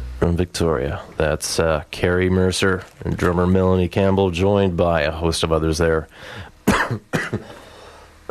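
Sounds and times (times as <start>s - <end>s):
speech: 0.2s - 7.6s
cough: 6.6s - 7.6s.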